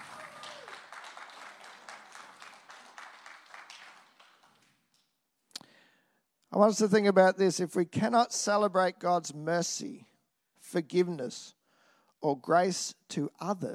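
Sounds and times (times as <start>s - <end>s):
audience applause: 0.0s - 5.0s
speech: 6.5s - 10.1s, 10.7s - 11.6s, 12.2s - 13.7s.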